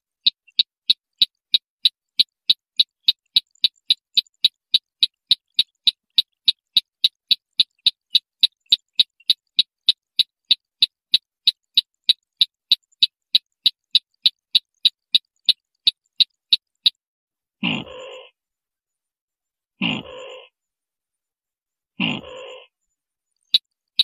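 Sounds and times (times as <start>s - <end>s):
white-breasted waterhen train of sharp clicks: 0.2s - 17.0s.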